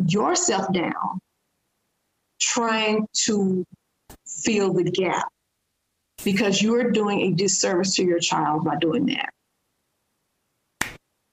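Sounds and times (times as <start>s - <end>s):
speech: 0.1s - 1.2s, 2.4s - 5.4s, 6.2s - 9.4s
single hand clap: 10.8s - 11.0s.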